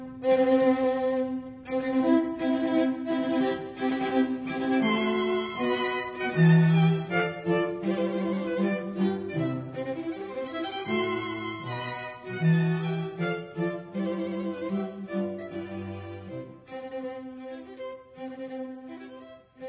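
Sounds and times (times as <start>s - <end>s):
quartet playing wedding march: 0.3s - 16.5s.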